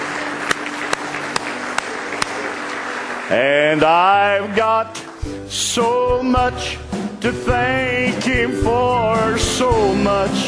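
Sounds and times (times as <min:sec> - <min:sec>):
audience clapping hands in praise: 0:00.0 - 0:05.4
speech: 0:03.3 - 0:10.4.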